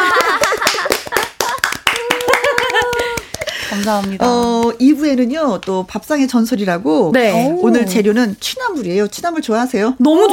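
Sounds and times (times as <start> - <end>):
audience applause: 0.0 - 3.5
speech: 3.8 - 10.3.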